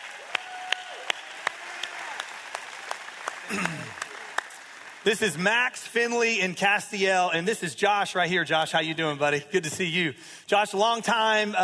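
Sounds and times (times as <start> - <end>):
sharp evenly spaced claps: 0.0 - 5.3
speech: 3.5 - 4.0, 5.0 - 11.6.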